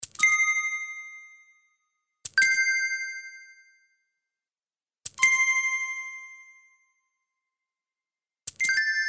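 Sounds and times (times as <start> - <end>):
coin: 0.0 - 0.4, 2.2 - 2.6, 5.1 - 5.4, 8.5 - 8.9.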